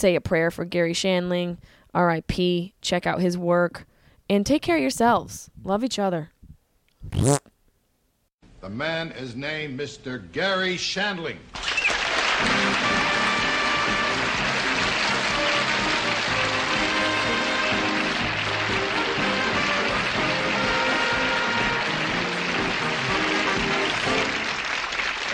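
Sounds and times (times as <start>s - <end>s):
speech: 0.0s - 6.4s, 7.0s - 7.5s, 8.6s - 11.7s
crowd applauding: 11.6s - 25.3s.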